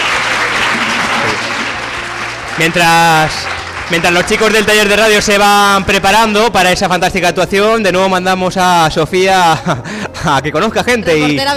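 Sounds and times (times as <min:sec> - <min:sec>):
applause: 0:00.0 - 0:06.1
speech: 0:02.6 - 0:11.5.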